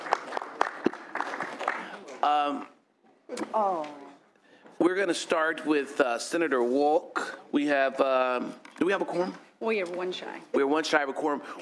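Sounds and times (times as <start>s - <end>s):
audience round of applause: 0.0s - 2.2s
speech: 2.2s - 4.0s, 4.8s - 11.6s.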